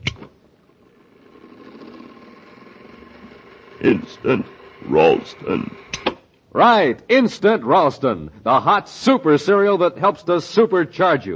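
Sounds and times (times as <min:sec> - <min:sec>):
robot machine mechanical whirring drone: 0:00.7 - 0:06.0
speech: 0:03.8 - 0:05.9, 0:06.6 - 0:11.3.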